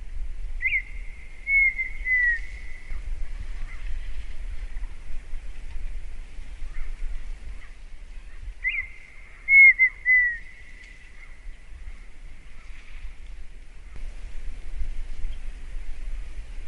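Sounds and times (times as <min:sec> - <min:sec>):
partridge whistling: 0:00.6 - 0:02.8, 0:08.6 - 0:10.9.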